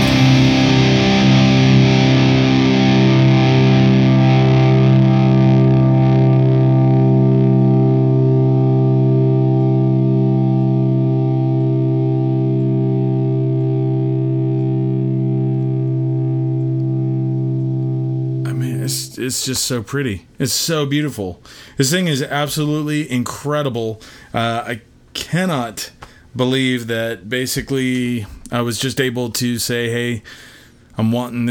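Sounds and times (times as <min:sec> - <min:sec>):
distorted electric guitar chord: 0:00.0 - 0:19.2
speech: 0:19.3 - 0:31.4.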